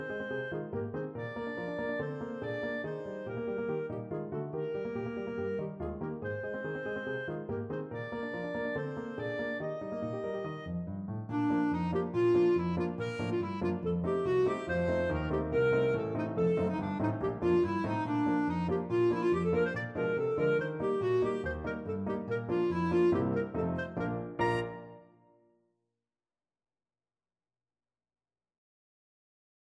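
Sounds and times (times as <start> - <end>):
clarinet melody: 0.0 - 25.4.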